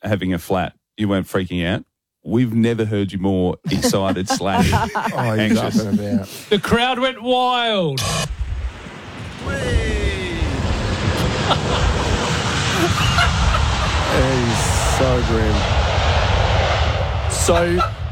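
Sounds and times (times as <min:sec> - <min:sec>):
speech: 0:00.0 - 0:08.3, 0:15.0 - 0:15.8, 0:17.5 - 0:18.0
laughter: 0:03.7 - 0:06.8, 0:11.2 - 0:15.3, 0:17.6 - 0:18.0
airplane landing, wheels touching down: 0:08.7 - 0:18.0.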